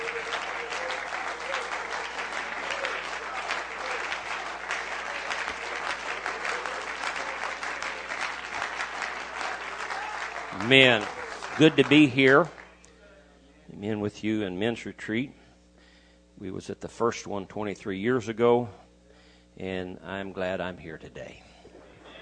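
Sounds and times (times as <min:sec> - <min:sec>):
crowd applauding with many hands clapping: 0:00.0 - 0:12.8
speech: 0:10.7 - 0:12.6, 0:13.8 - 0:15.4, 0:16.4 - 0:18.8, 0:19.6 - 0:21.5.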